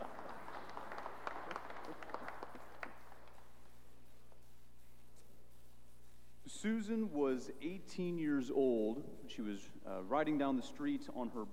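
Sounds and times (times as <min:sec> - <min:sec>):
audience applause: 0:00.0 - 0:03.4
low steady hum: 0:00.0 - 0:11.5
speech: 0:06.6 - 0:11.5.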